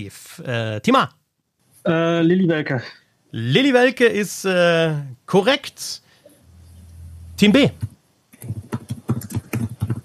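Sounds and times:
speech: 0:00.0 - 0:01.2, 0:01.8 - 0:06.0, 0:07.4 - 0:08.6
keyboard typing: 0:06.6 - 0:10.0.

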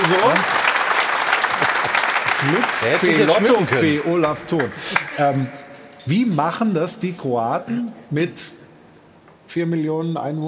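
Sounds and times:
group applauding: 0:00.0 - 0:05.8
speech: 0:00.1 - 0:00.6, 0:02.4 - 0:08.6, 0:09.5 - 0:10.4.

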